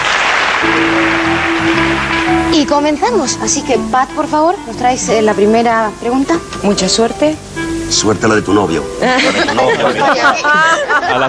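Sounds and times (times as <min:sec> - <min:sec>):
studio audience applause: 0:00.0 - 0:02.5
speech: 0:00.6 - 0:11.2
laughter: 0:09.0 - 0:11.2.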